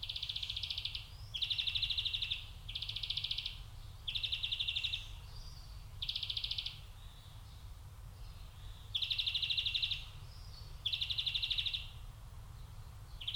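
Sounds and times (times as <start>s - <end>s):
European greenfinch Chloris chloris singing twittering trills: 0.0s - 12.0s, 12.6s - 13.3s.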